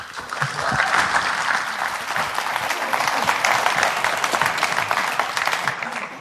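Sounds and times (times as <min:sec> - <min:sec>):
audience clapping welcoming a speaker: 0:00.0 - 0:06.1.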